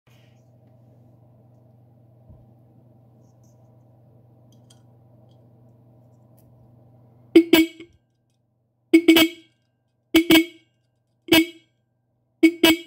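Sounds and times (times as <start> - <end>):
car horn: 7.4 - 8.0, 8.9 - 9.6, 10.2 - 11.7, 12.4 - 12.8.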